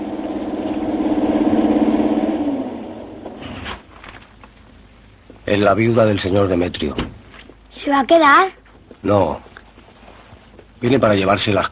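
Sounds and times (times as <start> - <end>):
black car engine humming as it pulls up and parks in front of a town hall: 0.0 - 4.8
speech: 5.5 - 7.1, 7.7 - 9.5, 10.8 - 11.7.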